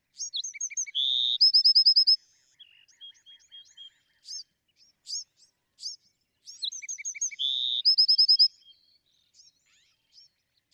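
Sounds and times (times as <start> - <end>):
Bewick's wren song with buzzy trill: 0.2 - 4.4, 5.0 - 8.6.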